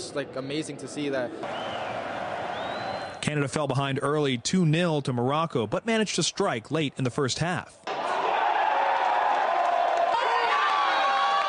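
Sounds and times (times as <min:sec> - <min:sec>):
speech: 0:00.1 - 0:02.0, 0:03.3 - 0:07.9
stadium crowd cheering: 0:01.4 - 0:04.4, 0:07.8 - 0:11.4.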